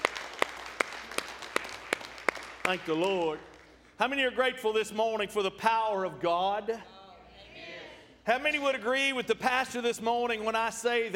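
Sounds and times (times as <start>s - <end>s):
audience clapping in unison: 0.0s - 4.0s
faint hum: 0.0s - 11.1s
speech: 2.6s - 6.9s, 8.2s - 11.1s.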